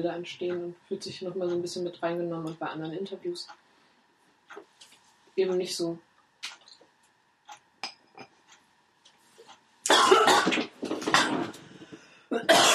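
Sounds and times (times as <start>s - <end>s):
speech: 0.0s - 3.6s, 4.5s - 6.6s
person coughing after choking on something swallowed: 9.9s - 11.6s, 12.3s - 12.7s.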